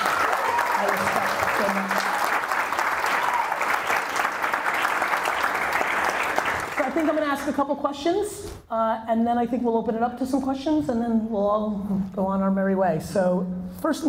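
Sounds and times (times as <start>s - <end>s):
audience applause: 0.0s - 7.2s
speech: 7.1s - 14.0s.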